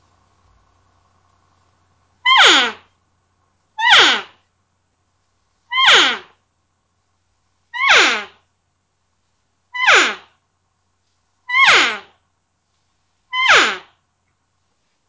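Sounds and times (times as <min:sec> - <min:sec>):
open-reed elk call blown, short high nasal mews sliding downward: 0:02.2 - 0:02.9, 0:03.8 - 0:04.4, 0:05.7 - 0:06.3, 0:07.8 - 0:08.3, 0:09.7 - 0:10.3, 0:11.5 - 0:12.1, 0:13.3 - 0:13.9.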